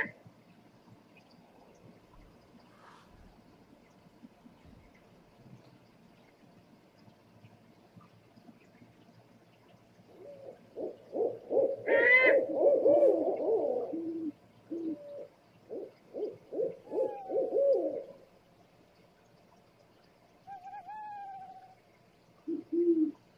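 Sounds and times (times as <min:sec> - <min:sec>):
scops owl hooting: 0:10.1 - 0:18.1, 0:20.5 - 0:21.8, 0:22.4 - 0:23.2.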